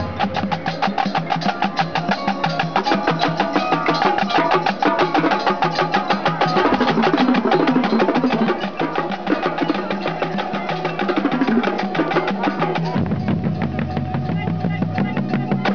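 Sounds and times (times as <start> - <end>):
rumba drums: 0.0 - 15.7.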